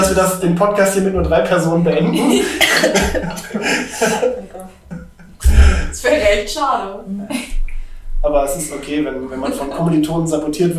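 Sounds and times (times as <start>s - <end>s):
speech: 0.1s - 5.0s, 5.9s - 7.6s, 8.2s - 10.7s
laughter: 1.9s - 5.8s, 9.0s - 10.3s
person coughing after choking on a drink: 2.3s - 4.5s.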